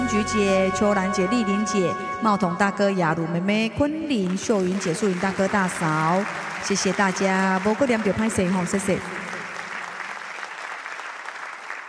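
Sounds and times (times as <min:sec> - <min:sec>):
speech: 0:00.1 - 0:09.2
audience applause for a performer: 0:04.3 - 0:11.8.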